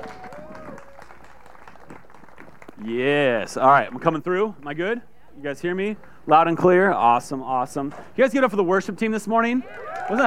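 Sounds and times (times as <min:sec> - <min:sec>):
audience applause: 0:00.0 - 0:03.8, 0:09.6 - 0:10.2
speech: 0:02.8 - 0:10.2.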